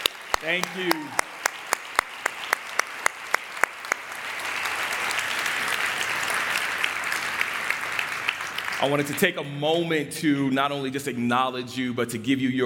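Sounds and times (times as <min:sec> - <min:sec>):
audience applause for standing veterans: 0:00.0 - 0:09.3
sharp claps: 0:00.0 - 0:09.3
speech: 0:00.4 - 0:01.3, 0:08.8 - 0:12.6.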